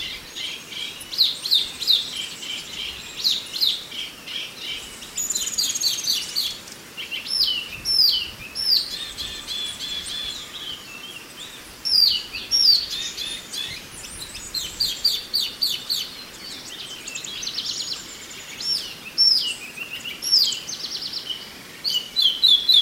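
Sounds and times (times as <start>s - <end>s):
Oriental magpie-robin song: 0.0s - 22.8s.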